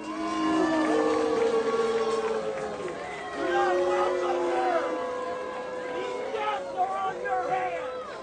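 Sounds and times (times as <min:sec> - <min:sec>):
crowd booing: 0:00.0 - 0:08.2.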